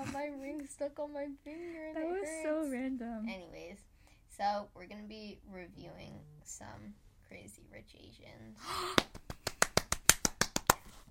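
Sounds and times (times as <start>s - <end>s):
speech: 0.2s - 9.2s
sharp hand claps: 9.0s - 11.0s.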